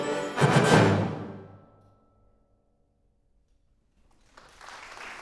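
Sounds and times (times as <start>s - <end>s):
fanfare: 0.0s - 1.8s.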